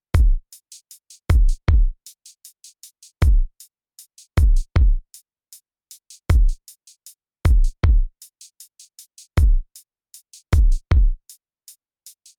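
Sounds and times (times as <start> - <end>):
kick drum: 0.1 - 0.5, 1.3 - 2.0, 3.2 - 3.5, 4.4 - 5.0, 6.3 - 6.6, 7.5 - 8.1, 9.4 - 9.7, 10.6 - 11.2.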